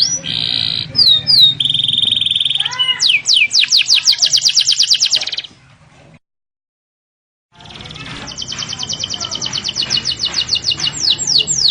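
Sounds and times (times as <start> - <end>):
canary singing: 0.0 - 5.6, 7.6 - 11.7.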